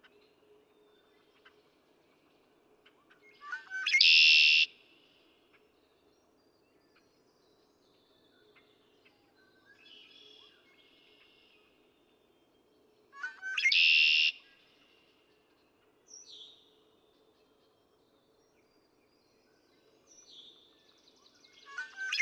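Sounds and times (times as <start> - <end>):
Red-winged Blackbird singing a stutter into a raspy trill: 3.2 - 4.7, 13.2 - 14.6, 21.5 - 22.1.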